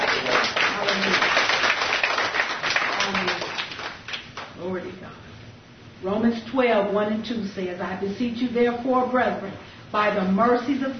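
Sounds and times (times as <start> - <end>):
audience clapping: 0.0 - 4.6
speech: 6.5 - 10.9.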